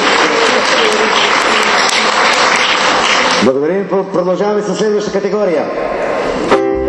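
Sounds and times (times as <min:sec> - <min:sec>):
audience applause: 0:00.0 - 0:03.6
speech: 0:03.4 - 0:06.7.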